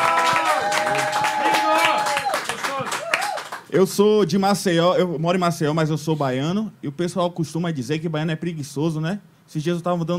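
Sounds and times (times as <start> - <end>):
audience applause and clapping: 0.0 - 3.7
speech: 3.7 - 10.1.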